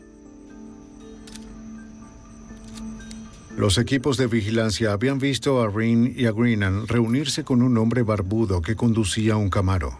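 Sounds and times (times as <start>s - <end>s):
camera shutter clicks as photos are taken: 1.2s - 1.6s, 2.5s - 3.3s
speech: 3.6s - 9.9s.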